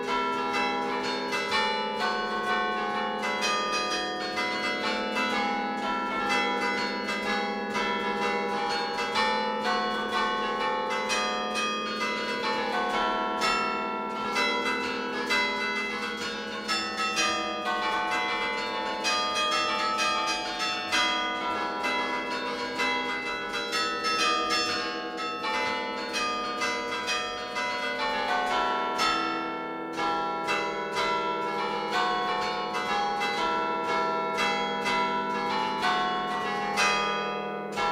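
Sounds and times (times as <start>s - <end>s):
church bells of San Quirico in Genoa, Liguria: 0.0s - 37.9s.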